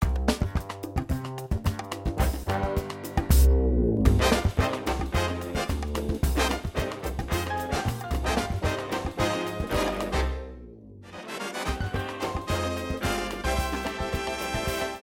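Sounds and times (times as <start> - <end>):
music: 0.0 - 15.0.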